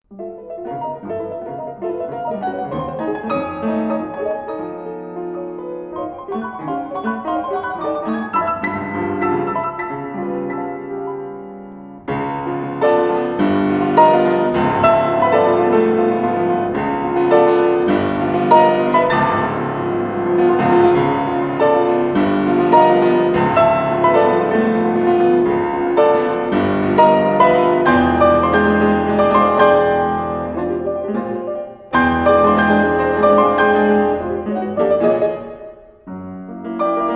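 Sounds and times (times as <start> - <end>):
fortepiano: 0.0 - 37.1.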